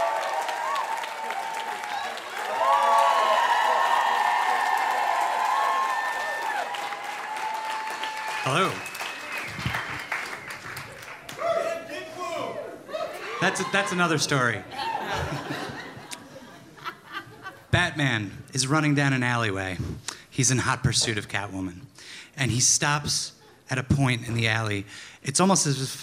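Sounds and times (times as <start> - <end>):
stand-up comedy audience clapping and cheering: 0.0 - 16.3
speech: 8.4 - 8.9, 13.5 - 15.4, 18.0 - 26.0
laughter: 12.9 - 17.8.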